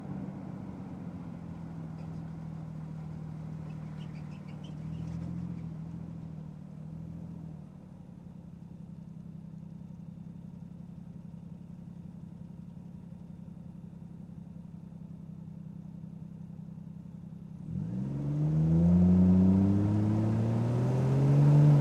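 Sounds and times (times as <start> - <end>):
Toyota Chaser Mark 2 engine: 17.6 - 21.7.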